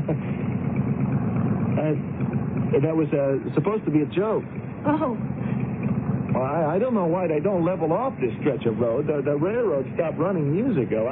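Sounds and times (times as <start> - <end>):
motorcycle engine idling: 0.0 - 11.1
speech: 1.9 - 5.6, 6.4 - 11.1.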